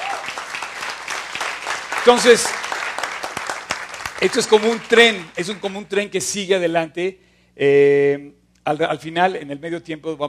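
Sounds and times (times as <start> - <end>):
audience applause: 0.0 - 5.8
speech: 2.0 - 2.6, 4.2 - 10.2.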